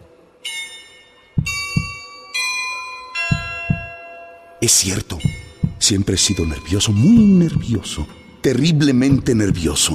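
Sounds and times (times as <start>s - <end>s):
heartbeat sound effect: 1.4s - 2.0s, 3.3s - 3.9s, 5.2s - 5.9s, 7.0s - 7.9s, 9.1s - 9.9s
speech: 4.6s - 9.9s.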